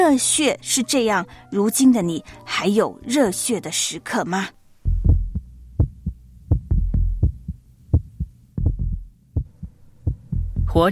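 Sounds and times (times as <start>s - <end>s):
speech: 0.1s - 4.6s, 10.8s - 10.9s
heartbeat sound effect: 4.9s - 10.9s.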